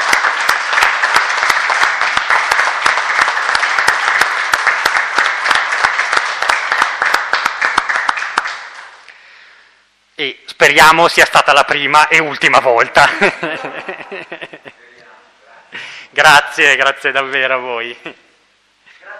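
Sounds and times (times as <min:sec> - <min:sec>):
audience applause: 0:00.0 - 0:09.0
speech: 0:10.2 - 0:13.9, 0:16.2 - 0:18.2
laughter: 0:13.0 - 0:14.8.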